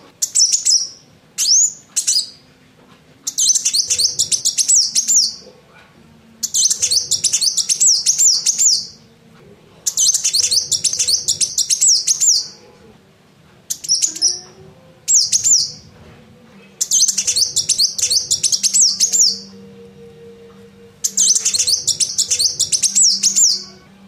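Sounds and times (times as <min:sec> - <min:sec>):
coconut hummingbird singing for bird training: 0:00.0 - 0:02.5, 0:03.2 - 0:05.5, 0:06.2 - 0:12.8, 0:13.7 - 0:16.0, 0:16.6 - 0:24.0.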